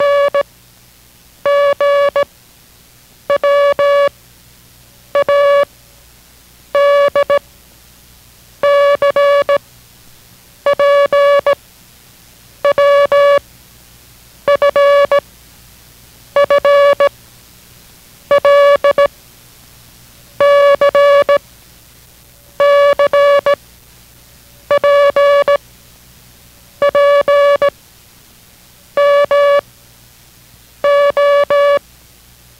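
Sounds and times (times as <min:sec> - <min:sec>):
Morse code beeps: 0:00.0 - 0:00.4, 0:01.5 - 0:02.2, 0:03.3 - 0:04.1, 0:05.2 - 0:05.7, 0:06.8 - 0:07.4, 0:08.6 - 0:09.6, 0:10.7 - 0:11.6, 0:12.7 - 0:13.4, 0:14.5 - 0:15.2, 0:16.4 - 0:17.1, 0:18.3 - 0:19.1, 0:20.4 - 0:21.4, 0:22.6 - 0:23.6, 0:24.7 - 0:25.6, 0:26.8 - 0:27.7, 0:29.0 - 0:29.6, 0:30.8 - 0:31.8.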